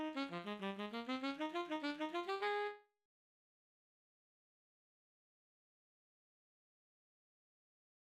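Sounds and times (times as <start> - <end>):
tenor saxophone playing an etude: 0.0 - 2.8.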